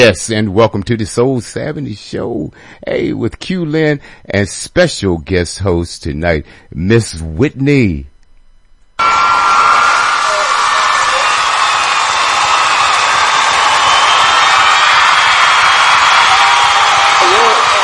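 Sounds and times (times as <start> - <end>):
speech: 0.0 - 8.1
audience clapping and cheering: 9.0 - 17.8.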